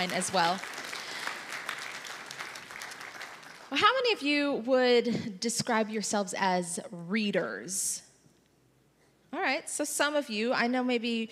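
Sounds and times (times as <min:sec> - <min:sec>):
speech: 0:00.0 - 0:00.8, 0:03.7 - 0:08.1, 0:09.3 - 0:11.3
clapping: 0:00.0 - 0:03.8.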